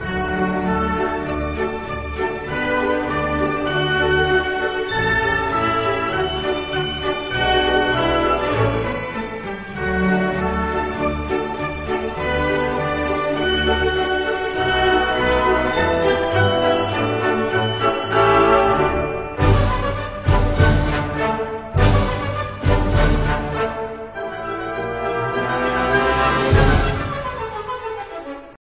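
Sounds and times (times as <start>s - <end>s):
polka music: 0.0s - 28.4s.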